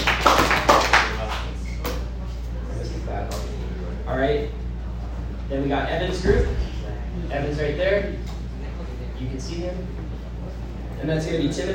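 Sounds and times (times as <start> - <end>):
group clapping in unison: 0.0 - 1.6
steady low hum: 1.6 - 11.7
speech: 5.9 - 6.6, 9.4 - 11.7.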